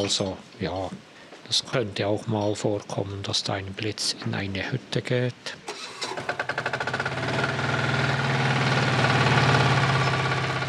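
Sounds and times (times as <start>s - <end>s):
speech: 0.0s - 6.8s
diesel generator starting and running: 5.7s - 10.6s.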